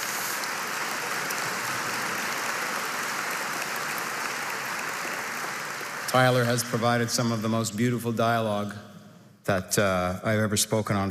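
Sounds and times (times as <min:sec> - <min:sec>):
audience applause: 0:00.0 - 0:07.4
speech: 0:06.1 - 0:08.9, 0:09.5 - 0:11.0.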